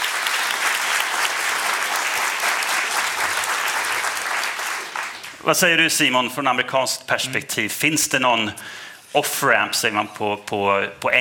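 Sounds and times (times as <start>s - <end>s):
audience applause: 0.0s - 5.4s
speech: 5.4s - 11.1s.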